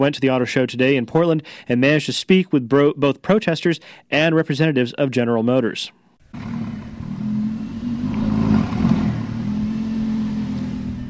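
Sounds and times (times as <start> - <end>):
speech: 0.0 - 6.8
Lamborghini engine revving in a car showroom at an auto show: 6.2 - 11.0.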